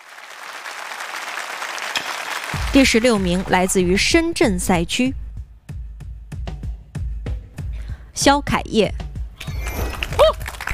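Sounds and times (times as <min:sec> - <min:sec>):
audience applause at a singing competition: 0:00.0 - 0:03.2, 0:09.7 - 0:10.7
speech: 0:02.7 - 0:05.2, 0:08.2 - 0:09.0.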